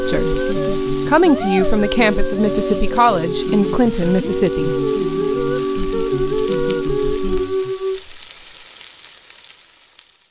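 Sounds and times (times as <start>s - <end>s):
melodic tone: 0.0s - 8.0s
bacon sizzling: 0.0s - 10.2s
speech: 0.1s - 5.3s.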